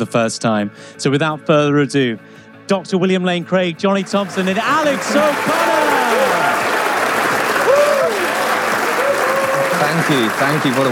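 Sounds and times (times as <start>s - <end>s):
speech: 0.0s - 5.9s, 9.9s - 10.9s
audience applause welcoming speakers onto the stage at an evening talk: 4.0s - 10.9s.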